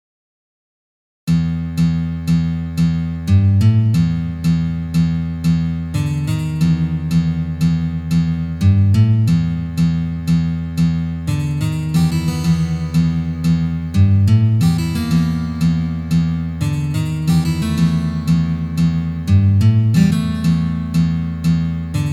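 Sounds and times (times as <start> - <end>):
guitar playing: 1.3 - 22.1.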